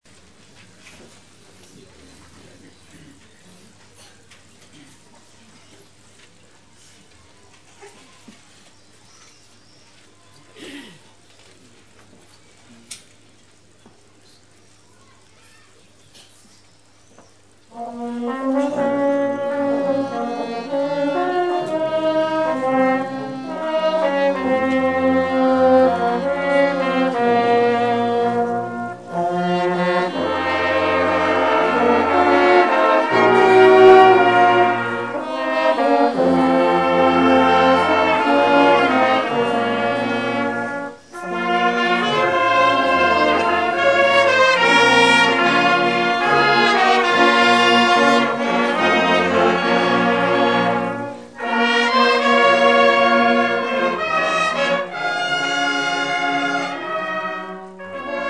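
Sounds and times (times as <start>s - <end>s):
orchestra: 17.4s - 58.2s.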